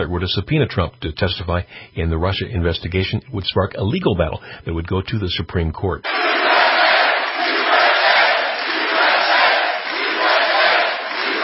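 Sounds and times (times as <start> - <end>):
speech: 0.0 - 6.6
rally crowd cheering and shouting: 6.1 - 11.4.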